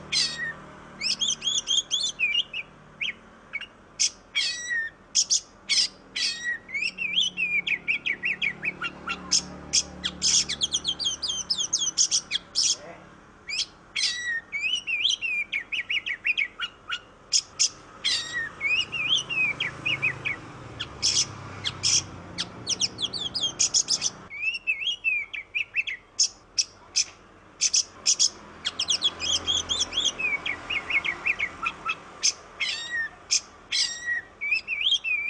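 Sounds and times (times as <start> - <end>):
Oriental magpie-robin singing tutor song in tembakan style: 0.0 - 35.2.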